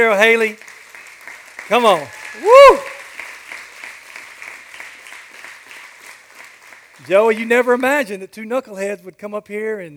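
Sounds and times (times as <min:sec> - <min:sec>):
speech: 0:00.0 - 0:00.7, 0:01.7 - 0:02.9, 0:07.0 - 0:09.9
crowd applause: 0:00.0 - 0:07.8.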